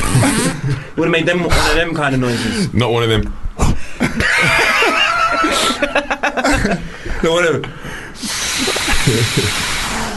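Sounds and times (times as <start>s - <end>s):
person imitating a fart with their mouth: 0.0s - 0.6s, 8.4s - 10.0s
speech: 0.2s - 3.4s, 4.2s - 4.6s, 5.8s - 9.7s
laughter: 4.0s - 6.9s, 8.6s - 9.8s.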